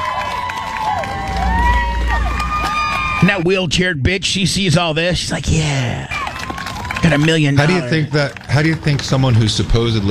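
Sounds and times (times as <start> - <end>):
crowd cheering: 0.0 - 3.8, 5.8 - 10.0
speech: 3.2 - 6.2, 7.0 - 10.0.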